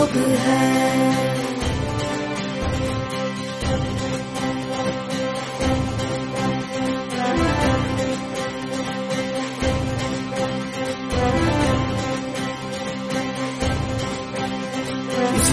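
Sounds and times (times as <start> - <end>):
yoga anthem in Hindi: 0.0 - 15.5.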